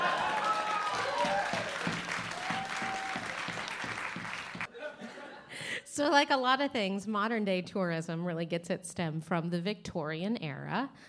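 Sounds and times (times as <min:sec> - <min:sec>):
audience applause: 0:00.0 - 0:04.7
laughter: 0:04.7 - 0:05.8
speech: 0:06.0 - 0:11.0.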